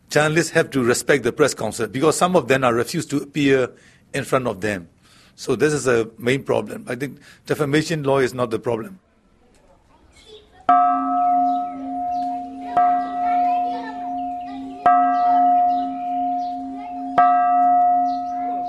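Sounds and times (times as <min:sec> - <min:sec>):
speech: 0:00.1 - 0:09.1, 0:10.7 - 0:11.1
Buddhist pagoda bells rung at Shwedagon Pagoda in Yangon: 0:10.7 - 0:18.6.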